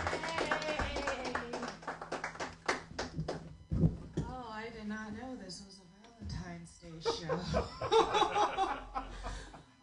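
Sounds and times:
audience applause: 0.0 - 3.4
speech: 5.0 - 8.2
laughter: 7.0 - 9.6.

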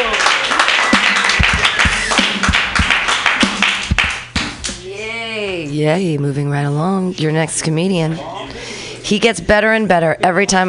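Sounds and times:
audience applause: 0.0 - 4.3
speech: 5.8 - 8.3, 9.1 - 10.6.

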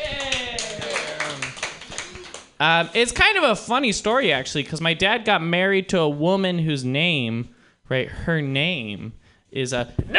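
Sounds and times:
audience clapping: 0.0 - 3.0
speech: 2.6 - 10.1.

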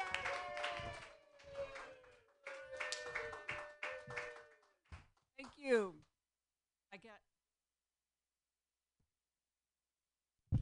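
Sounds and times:
audience applause at a stand-up comedy show: 0.0 - 4.8
speech: 7.0 - 7.4.

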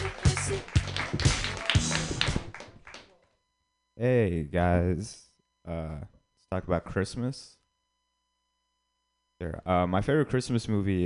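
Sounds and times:
audience clapping hands: 0.0 - 3.2
speech: 4.0 - 7.6, 9.4 - 11.0.

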